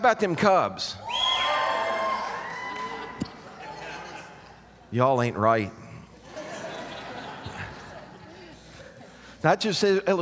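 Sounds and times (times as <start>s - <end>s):
speech: 0.0s - 1.0s, 4.9s - 5.8s, 9.4s - 10.2s
audience cheering: 1.0s - 4.2s
laughter: 2.9s - 4.9s, 6.1s - 9.4s.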